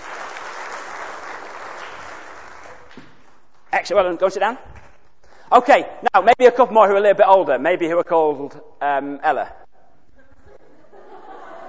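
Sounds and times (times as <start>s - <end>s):
audience clapping: 0.0s - 3.7s
speech: 3.8s - 4.8s, 5.5s - 9.6s
laughter: 10.1s - 11.6s.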